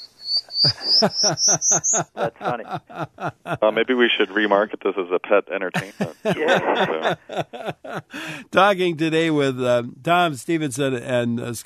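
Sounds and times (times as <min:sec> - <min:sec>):
prairie warbler singing thin buzzy song: 0:00.0 - 0:02.2
laughter: 0:00.5 - 0:04.9, 0:05.7 - 0:08.6
speech: 0:00.6 - 0:11.6.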